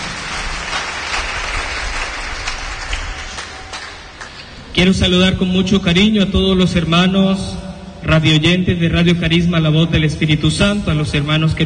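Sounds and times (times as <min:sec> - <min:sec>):
audience clapping hands: 0:00.0 - 0:04.7
speech: 0:04.8 - 0:11.6.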